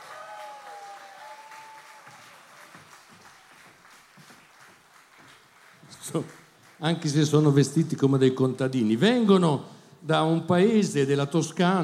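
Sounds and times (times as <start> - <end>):
audience applause: 0.0 - 7.4
speech: 6.1 - 11.8.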